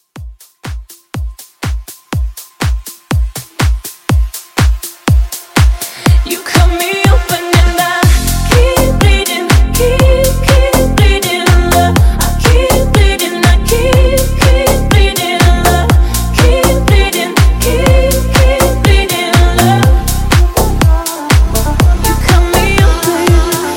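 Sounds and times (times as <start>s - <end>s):
house music at 122 BPM: 0.0s - 23.7s.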